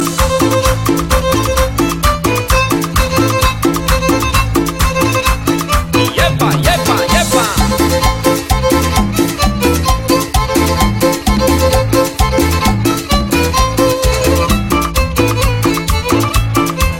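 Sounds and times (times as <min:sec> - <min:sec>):
cumbia music: 0:00.0 - 0:16.9.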